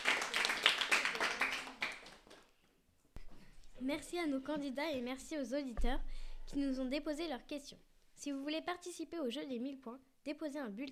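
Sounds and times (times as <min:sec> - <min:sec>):
audience applause: 0:00.0 - 0:02.4
speech: 0:03.8 - 0:10.9.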